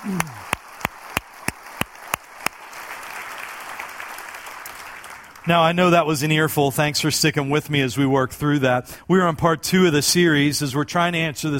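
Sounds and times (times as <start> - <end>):
speech: 0.0 - 0.5, 5.5 - 11.5
audience applauding: 0.0 - 5.8.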